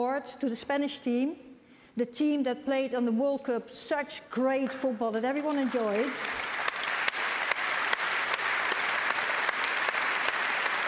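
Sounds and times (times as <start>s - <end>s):
speech: 0.0s - 6.5s
audience applause: 5.7s - 10.8s.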